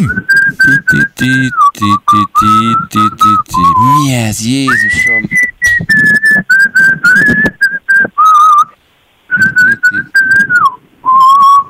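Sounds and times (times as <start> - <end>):
person whistling a tune: 0.0 - 4.1, 4.7 - 11.6
speech: 0.0 - 6.2.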